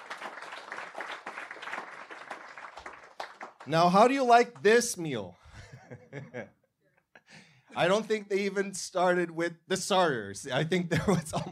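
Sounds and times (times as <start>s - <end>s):
audience applause: 0.0s - 4.7s
speech: 3.7s - 5.4s, 6.1s - 6.6s, 7.7s - 11.5s
laughter: 5.5s - 7.4s, 10.8s - 11.5s.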